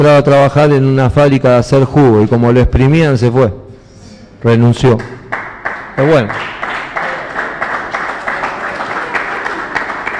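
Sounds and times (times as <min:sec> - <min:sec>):
speech: 0:00.0 - 0:03.6, 0:04.4 - 0:05.2, 0:06.0 - 0:06.6
applause: 0:05.0 - 0:10.1.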